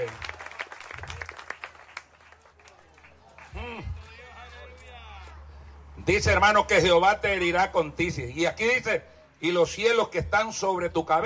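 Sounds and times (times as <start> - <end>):
audience applause: 0.0 - 4.9
speech: 6.1 - 11.2.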